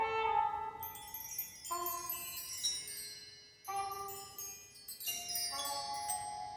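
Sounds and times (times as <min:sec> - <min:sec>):
trumpet: 0:00.0 - 0:02.5, 0:03.7 - 0:04.6, 0:05.5 - 0:06.4.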